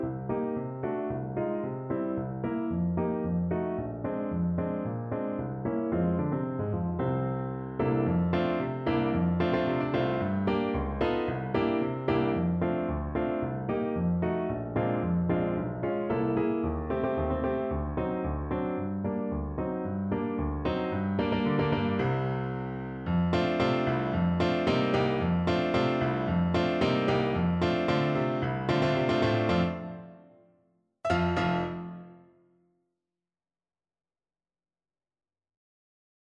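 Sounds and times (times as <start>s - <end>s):
piano accompaniment: 0.0s - 32.5s.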